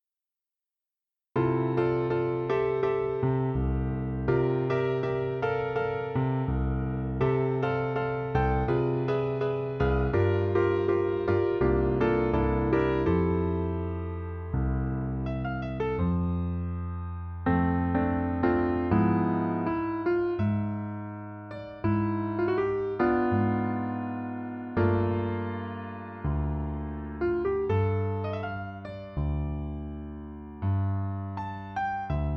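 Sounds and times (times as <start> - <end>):
piano: 0.0 - 32.3.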